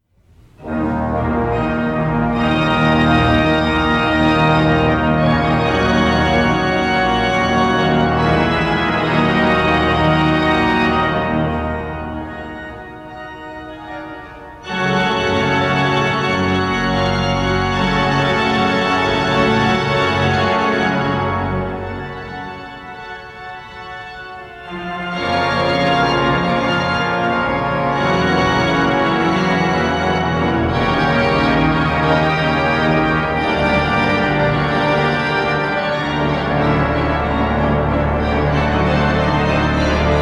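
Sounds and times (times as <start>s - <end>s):
musical improvisation: 0.3s - 40.2s.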